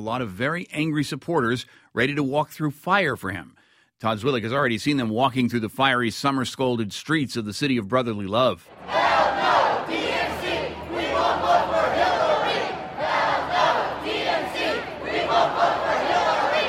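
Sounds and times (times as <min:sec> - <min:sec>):
speech: 0:00.0 - 0:10.0
crowd of protesters chanting in street: 0:08.7 - 0:16.6.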